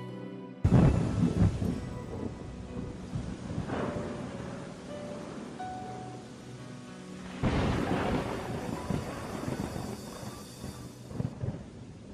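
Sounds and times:
thunderstorm with rain: 0:00.6 - 0:12.0.

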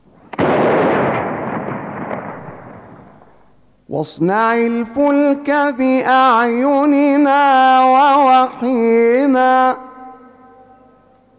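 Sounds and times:
Ramadan imsak cannon firing: 0:00.2 - 0:03.6
speech: 0:03.9 - 0:09.8.

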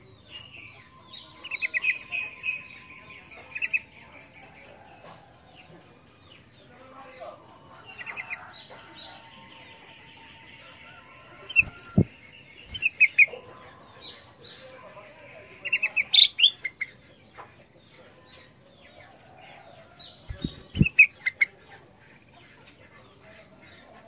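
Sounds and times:
ruby-throated bulbul song: 0:00.0 - 0:04.4, 0:07.8 - 0:19.0, 0:19.6 - 0:22.4.

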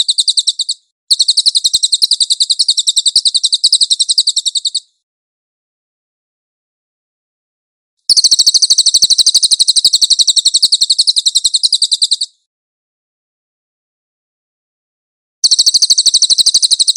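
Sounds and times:
cililin singing a high thin trill: 0:00.0 - 0:04.9, 0:08.1 - 0:12.3, 0:15.4 - 0:16.9.

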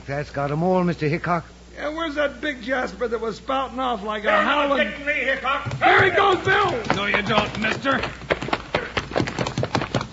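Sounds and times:
speech: 0:00.1 - 0:08.2
horse hooves clip-clopping: 0:04.8 - 0:10.1.

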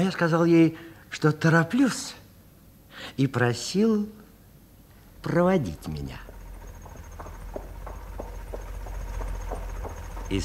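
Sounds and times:
speech: 0:00.0 - 0:02.2, 0:03.0 - 0:04.2, 0:05.2 - 0:06.3
horse hooves clip-clopping: 0:05.7 - 0:10.4.

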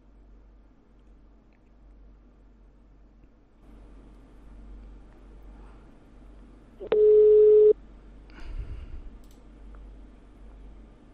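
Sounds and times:
telephone ringback tone while redialing a debt collection department: 0:06.8 - 0:07.7.

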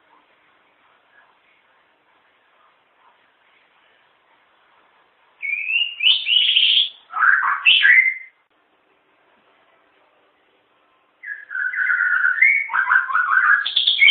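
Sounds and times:
white-rumped shama song: 0:05.4 - 0:08.4, 0:11.2 - 0:14.0.

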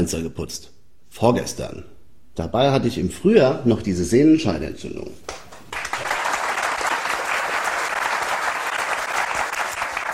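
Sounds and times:
speech: 0:00.0 - 0:05.5
crowd applauding: 0:05.7 - 0:10.1.

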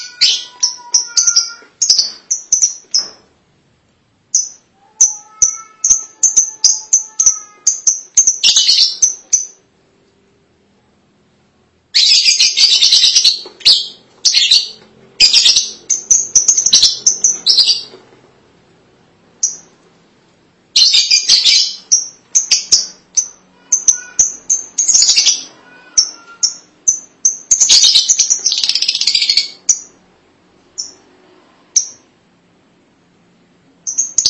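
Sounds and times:
lovebird chirping and chattering: 0:00.0 - 0:03.2, 0:04.3 - 0:09.7, 0:11.9 - 0:18.0, 0:19.4 - 0:19.7, 0:20.8 - 0:30.0, 0:30.8 - 0:31.0, 0:31.8 - 0:32.0, 0:33.8 - 0:34.2.

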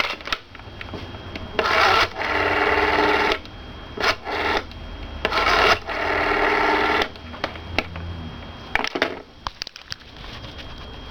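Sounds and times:
rotary dial of a 1970s Citesa Heraldo desk telephone turned and released: 0:00.0 - 0:00.5, 0:01.5 - 0:07.2.

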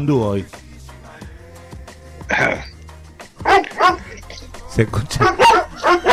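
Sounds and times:
speech: 0:00.0 - 0:00.6, 0:04.8 - 0:06.1
dog barking in background: 0:03.4 - 0:04.2, 0:05.2 - 0:06.1.

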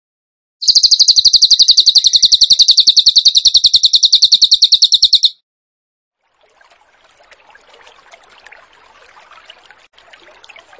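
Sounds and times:
bird high trill: 0:00.6 - 0:05.4.

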